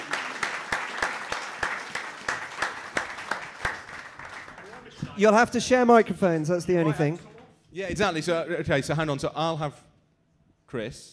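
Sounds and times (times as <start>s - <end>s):
audience applauding: 0.0s - 5.0s
speech: 5.2s - 9.8s, 10.7s - 11.1s.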